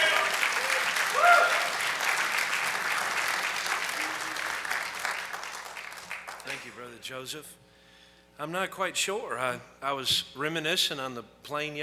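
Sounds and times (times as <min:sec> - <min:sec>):
audience applauding: 0:00.0 - 0:06.8
speech: 0:07.0 - 0:07.6, 0:08.4 - 0:11.8.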